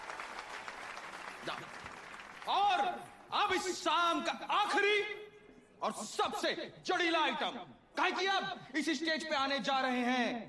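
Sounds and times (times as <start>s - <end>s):
audience applause at an evening stage show in a railway colony: 0.0s - 3.2s
speech: 1.4s - 5.2s, 5.8s - 10.4s.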